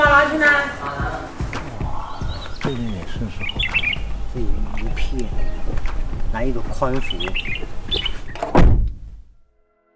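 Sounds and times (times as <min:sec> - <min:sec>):
birds chirping outside the window: 0:00.0 - 0:09.1
speech: 0:02.7 - 0:03.7, 0:04.4 - 0:08.1.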